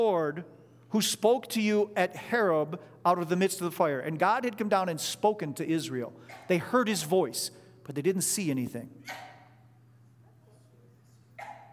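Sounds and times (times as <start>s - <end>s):
speech: 0.0s - 9.3s
faint steady hum: 0.0s - 11.7s
person sneezing: 6.3s - 6.6s, 9.0s - 9.4s.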